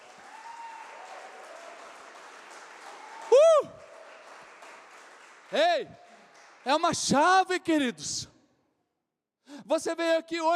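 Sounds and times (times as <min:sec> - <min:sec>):
audience applause: 0:00.0 - 0:06.8
speech: 0:05.5 - 0:06.0, 0:06.6 - 0:08.3, 0:09.7 - 0:10.5.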